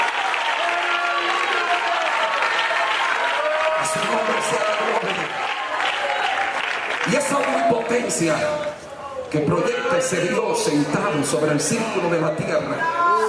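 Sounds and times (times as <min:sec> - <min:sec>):
audience applause: 0:00.0 - 0:08.8
speech: 0:03.9 - 0:05.5, 0:07.1 - 0:13.2.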